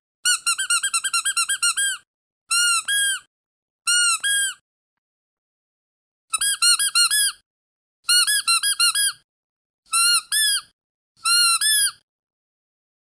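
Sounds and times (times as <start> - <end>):
several different dog squeaky toys squeaking: 0.3 - 3.3, 3.9 - 4.6, 6.4 - 7.4, 8.1 - 9.2, 9.9 - 12.0.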